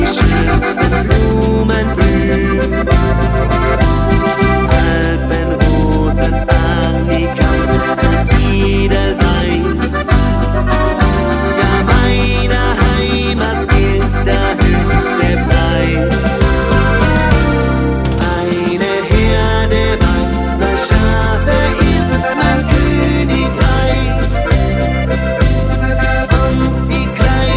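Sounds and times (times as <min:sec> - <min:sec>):
group karaoke singing: 0:00.0 - 0:27.5
choir singing: 0:18.1 - 0:24.2.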